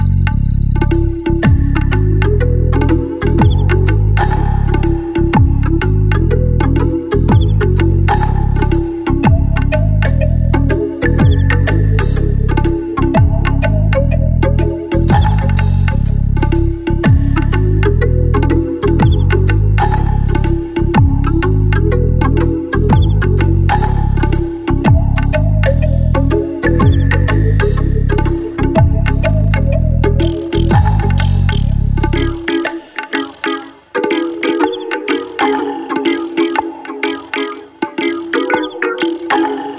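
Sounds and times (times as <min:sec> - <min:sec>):
dub music: 0:00.0 - 0:39.7.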